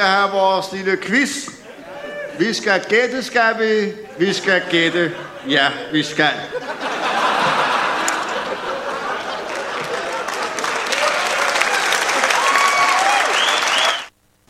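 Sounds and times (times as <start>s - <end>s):
speech: 0.0s - 1.6s, 2.4s - 6.9s
laughter: 1.5s - 12.9s
audience clapping: 7.4s - 14.1s.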